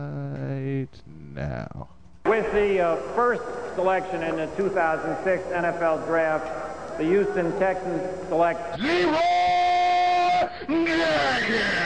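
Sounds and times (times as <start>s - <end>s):
speech: 0.9s - 9.4s, 10.7s - 11.8s
crowd booing: 3.0s - 11.8s.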